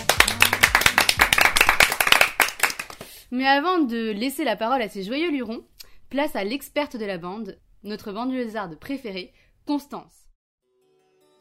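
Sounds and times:
small audience clapping: 0:00.0 - 0:03.2
speech: 0:03.3 - 0:10.2.

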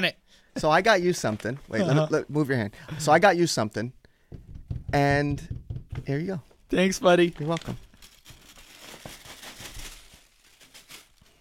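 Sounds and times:
speech: 0:00.0 - 0:04.0, 0:04.9 - 0:07.9
paper gift bag crinkling as it is opened: 0:07.2 - 0:11.3.

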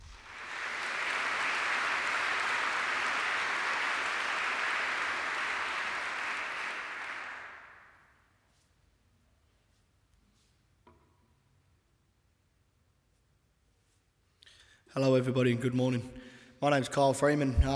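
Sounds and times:
audience applause: 0:00.0 - 0:08.0
speech: 0:14.9 - 0:17.7.

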